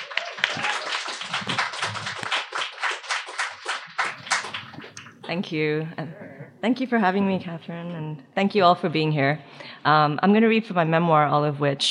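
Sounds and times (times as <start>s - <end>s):
audience applause: 0.0s - 5.2s
speech: 5.3s - 11.8s.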